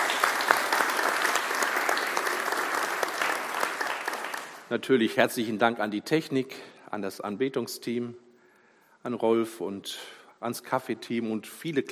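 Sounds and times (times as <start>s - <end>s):
audience applause: 0.0s - 4.7s
speech: 4.7s - 8.2s, 9.0s - 11.9s.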